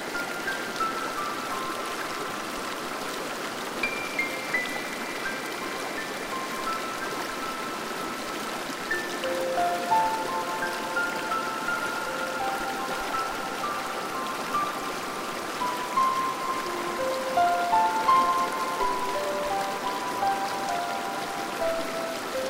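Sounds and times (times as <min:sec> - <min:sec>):
fountain: 0:00.0 - 0:22.4.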